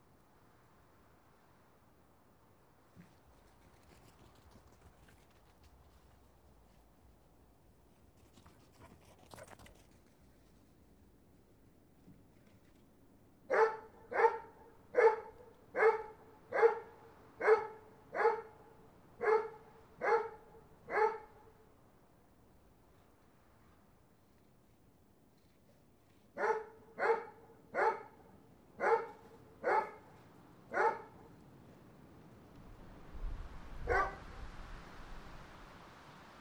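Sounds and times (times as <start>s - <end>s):
dog barking: 13.5s - 21.4s, 26.4s - 31.4s, 33.8s - 34.3s.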